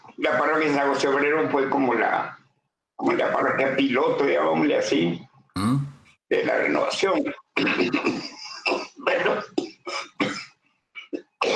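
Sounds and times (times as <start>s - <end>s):
speech: 0.2s - 2.4s, 3.0s - 8.4s
gravelly throat clearing: 5.6s - 6.0s, 7.6s - 11.5s
harsh hacking coughs: 5.6s - 6.0s, 7.6s - 10.6s, 11.2s - 11.5s.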